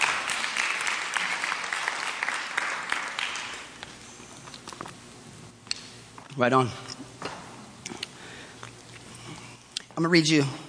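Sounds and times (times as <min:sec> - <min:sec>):
audience clapping hands: 0:00.0 - 0:04.0
speech: 0:06.4 - 0:07.0, 0:10.0 - 0:10.6.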